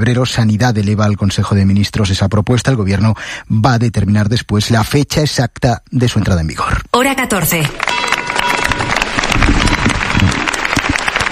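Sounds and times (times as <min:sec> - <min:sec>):
speech: 0:00.0 - 0:08.2
crowd applause in the main square of Algeciras: 0:07.7 - 0:11.3.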